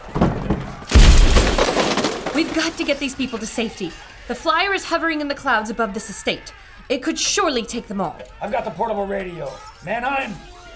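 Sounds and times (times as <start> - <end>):
bookcase knocked over: 0.0 - 3.2
debris clattering and breaking: 0.0 - 3.7
speech: 2.4 - 10.5.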